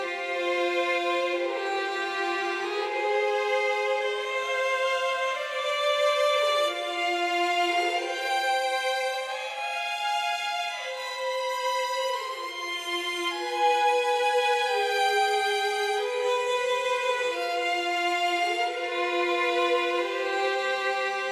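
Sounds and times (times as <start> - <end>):
violins: 0.0 - 21.3.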